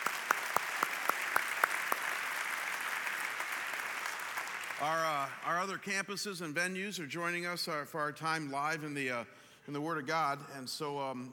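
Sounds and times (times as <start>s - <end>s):
crowd clapping: 0.0s - 5.8s
speech: 4.8s - 11.3s.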